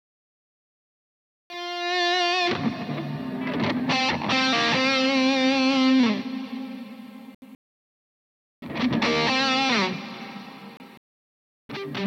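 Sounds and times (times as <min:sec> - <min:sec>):
electric guitar lead multitrack: 0:01.5 - 0:07.4, 0:08.6 - 0:11.0, 0:11.7 - 0:12.0.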